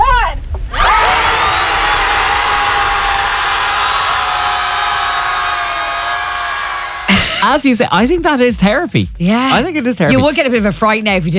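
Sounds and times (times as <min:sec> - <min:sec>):
group of people screaming at the sea: 0:00.7 - 0:07.4
speech: 0:07.4 - 0:11.3.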